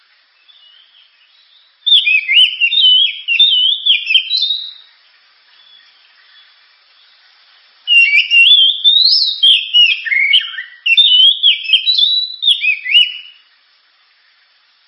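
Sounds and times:
Oriental magpie-robin singing: 0:00.4 - 0:04.8, 0:07.9 - 0:13.4.

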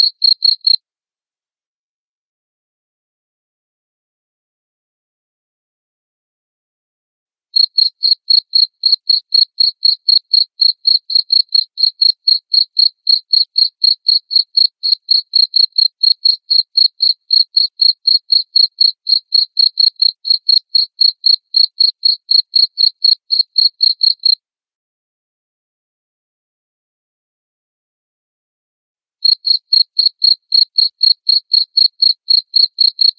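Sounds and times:
cricket chirping: 0:00.0 - 0:00.8, 0:07.6 - 0:24.4, 0:29.2 - 0:33.1.

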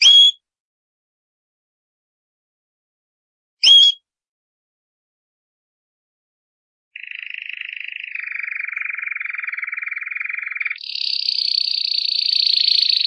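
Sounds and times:
champion canary song: 0:00.0 - 0:00.4, 0:03.6 - 0:04.0, 0:07.0 - 0:13.0.

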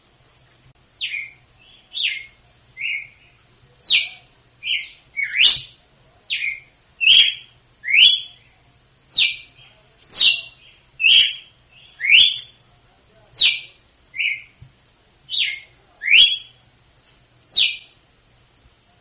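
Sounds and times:
female red-cowled cardinal singing in Northeast Brazil style: 0:01.0 - 0:08.5, 0:09.1 - 0:12.6, 0:13.3 - 0:14.6, 0:15.3 - 0:16.6, 0:17.5 - 0:17.9.

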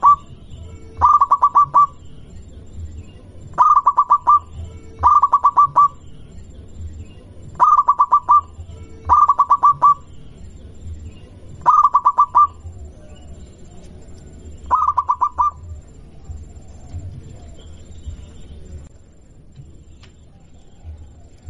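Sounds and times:
zebra dove of a local strain cooing: 0:00.0 - 0:02.1, 0:03.4 - 0:06.1, 0:07.4 - 0:10.2, 0:10.9 - 0:18.6.

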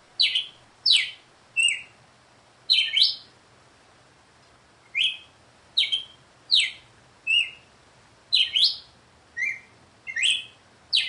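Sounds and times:
female red-cowled cardinal song: 0:00.2 - 0:02.0, 0:02.7 - 0:03.3, 0:04.9 - 0:07.7, 0:08.3 - 0:11.0.

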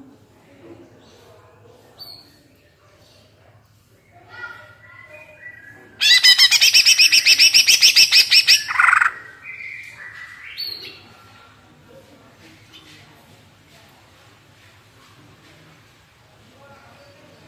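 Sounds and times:
greater green leafbird buzzy chatter: 0:04.3 - 0:11.0.

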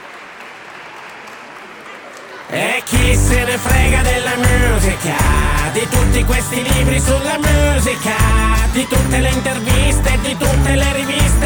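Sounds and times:
applause on an Italian radio programme: 0:00.0 - 0:03.0
speech: 0:02.5 - 0:11.4.

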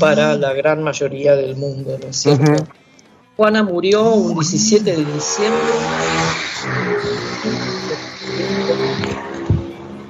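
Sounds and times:
speech: 0:00.0 - 0:02.8, 0:03.4 - 0:09.3
motorcycle passing along a street in a residential neighbourhood: 0:04.8 - 0:10.0.

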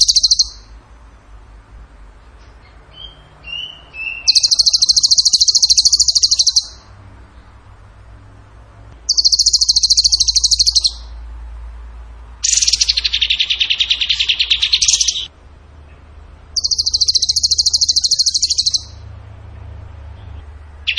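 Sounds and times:
bird trilling: 0:00.0 - 0:00.8, 0:02.5 - 0:06.9, 0:09.1 - 0:11.2, 0:12.4 - 0:15.3, 0:16.6 - 0:19.0.

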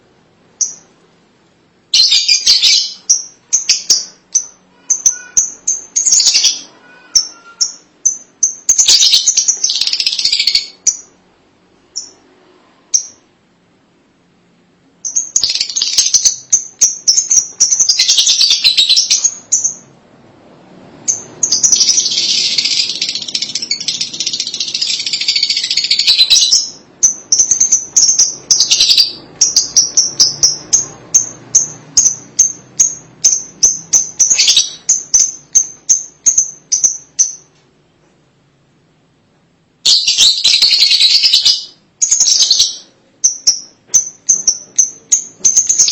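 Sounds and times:
lovebird chattering: 0:02.0 - 0:11.2, 0:15.0 - 0:19.9, 0:21.1 - 0:37.5, 0:39.9 - 0:45.9.

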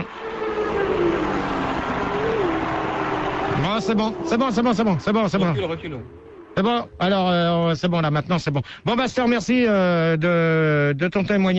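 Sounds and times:
racing engines running in the paddock: 0:00.0 - 0:06.6
speech: 0:03.8 - 0:11.5.

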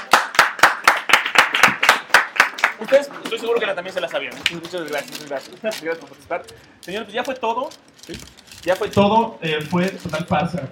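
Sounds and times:
audience clapping in unison at a comic-book talk: 0:00.0 - 0:03.4
speech: 0:02.8 - 0:10.7.

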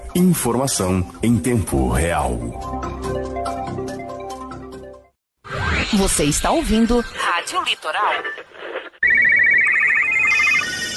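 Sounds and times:
speech: 0:00.2 - 0:03.3, 0:05.9 - 0:08.5
telephone ringing: 0:09.0 - 0:10.9.

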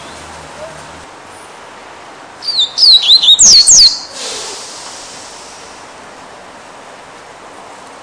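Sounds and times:
double-collared seedeater whistled song: 0:02.4 - 0:04.2.

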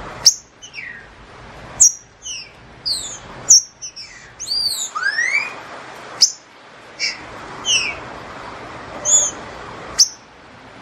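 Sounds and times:
Green-winged Saltator whistling song: 0:00.2 - 0:01.2, 0:01.8 - 0:08.1, 0:09.0 - 0:10.3.

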